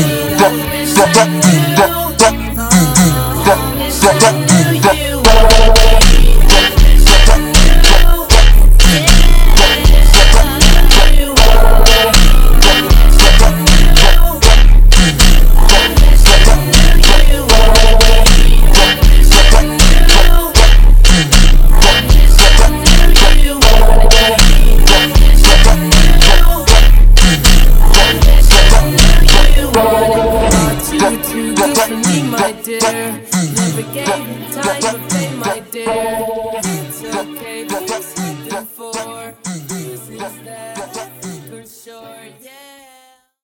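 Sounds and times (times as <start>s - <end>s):
super slowed funk music: 0.0s - 33.7s.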